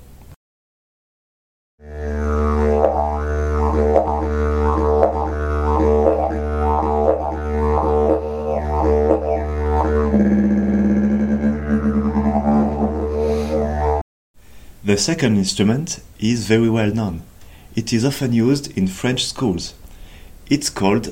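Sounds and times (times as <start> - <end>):
didgeridoo, the Australian wind instrument, droning: 1.8 - 14.0
speech: 15.0 - 19.8, 20.5 - 21.1.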